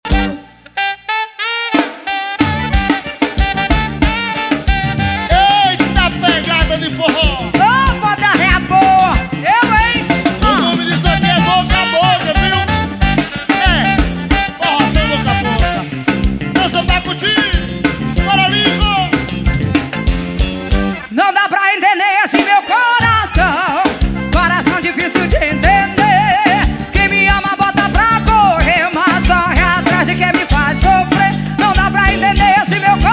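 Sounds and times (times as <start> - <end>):
forró music: 0.0 - 33.1.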